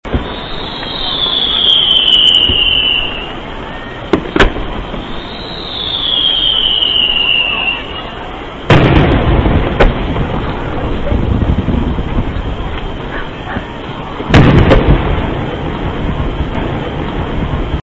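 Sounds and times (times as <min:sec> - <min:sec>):
fireworks: 0:00.0 - 0:17.8.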